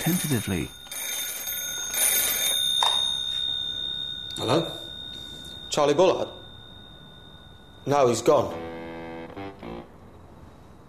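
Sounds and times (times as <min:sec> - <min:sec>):
speech: 0:00.0 - 0:00.8, 0:04.4 - 0:04.8, 0:05.8 - 0:06.4, 0:07.8 - 0:08.7
payphone ringing: 0:00.0 - 0:09.8.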